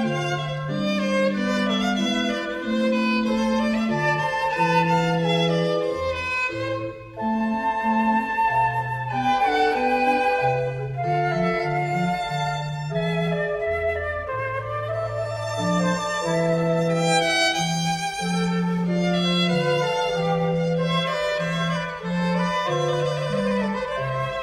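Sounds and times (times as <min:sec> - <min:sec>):
trio sonata for flute, violin and basso continuo: 0:00.0 - 0:24.4.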